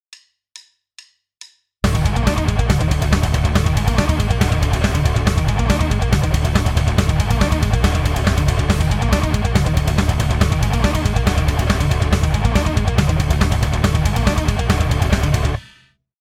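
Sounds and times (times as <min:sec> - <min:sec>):
rhythm: 0:01.8 - 0:15.6.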